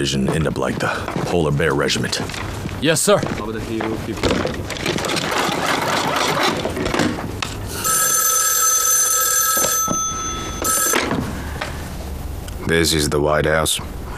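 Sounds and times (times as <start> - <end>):
speech: 0.0 - 5.2, 12.7 - 14.0
rustling and scraping: 0.0 - 7.6
telephone ringing with a sharp high electronic trill: 7.7 - 11.6.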